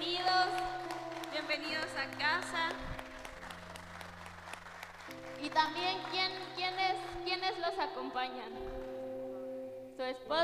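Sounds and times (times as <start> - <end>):
audience applause: 0.0 - 7.4
speech: 1.5 - 3.0, 5.4 - 8.9, 10.0 - 10.4.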